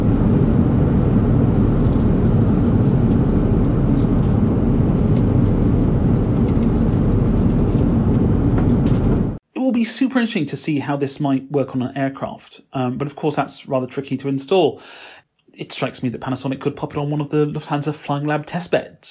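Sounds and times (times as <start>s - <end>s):
cabin roar in Lufthansa Airbus A350 business class: 0.0s - 9.4s
speech: 9.8s - 19.0s.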